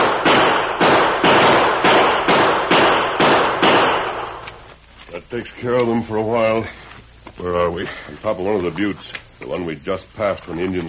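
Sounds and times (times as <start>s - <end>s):
gunshots in a radio drama: 0.0s - 4.5s
speech: 5.3s - 10.8s.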